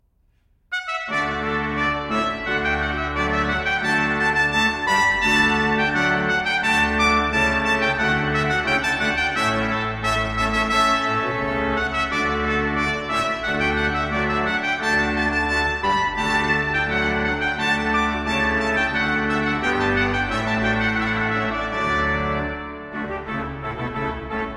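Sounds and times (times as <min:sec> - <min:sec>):
trumpet playing a rondeau: 0:00.7 - 0:24.5
organ playing a rondeau: 0:00.8 - 0:24.5.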